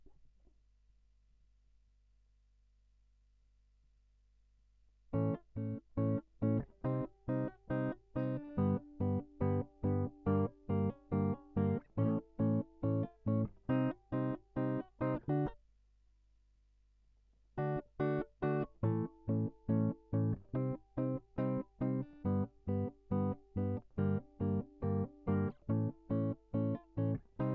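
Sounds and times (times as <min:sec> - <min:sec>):
guitar line: 0:05.2 - 0:15.6, 0:17.6 - 0:27.5.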